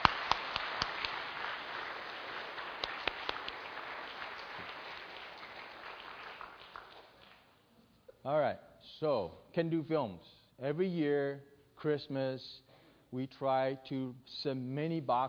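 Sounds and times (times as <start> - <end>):
audience clapping: 0.0 - 7.6
speech: 8.2 - 15.2.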